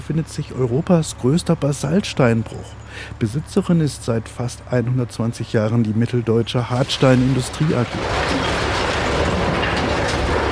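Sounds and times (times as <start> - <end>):
speech: 0.1 - 8.6
excavator loading blasted basalt boulders onto a dump truck at a quarry in Homberg-Ohm: 6.5 - 10.5.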